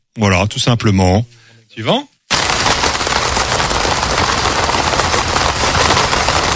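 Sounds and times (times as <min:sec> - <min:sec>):
speech: 0:00.2 - 0:02.1
rain falling on a tent: 0:02.3 - 0:06.5.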